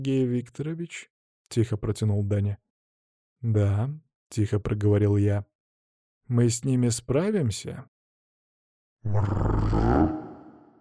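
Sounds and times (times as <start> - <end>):
speech: 0.0 - 2.7, 3.4 - 5.5, 6.3 - 7.9, 9.0 - 10.2
crouching beast growling with ears flattened: 9.1 - 10.7.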